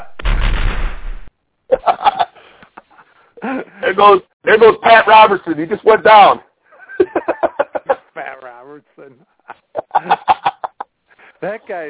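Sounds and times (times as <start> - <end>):
firing squad gunshots sound effect: 0.0 - 1.3
laughter: 1.7 - 3.8, 6.7 - 8.4, 9.2 - 10.9
speech: 3.5 - 6.5, 11.4 - 11.8.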